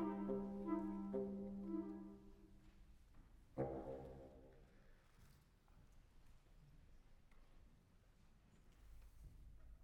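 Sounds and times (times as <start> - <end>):
wind quintet playing allegro con spirito: 0.0 - 2.2.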